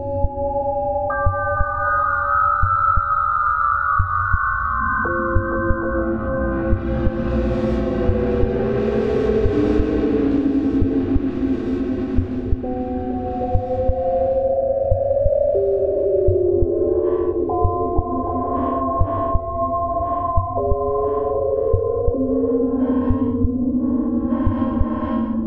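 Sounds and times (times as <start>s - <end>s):
spooky drone bed: 0.0s - 25.4s.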